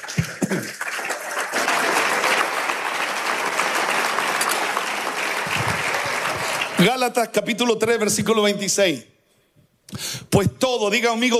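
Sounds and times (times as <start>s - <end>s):
audience applauding: 0.0s - 7.0s
speech: 0.5s - 0.8s, 6.8s - 9.1s, 9.9s - 11.3s.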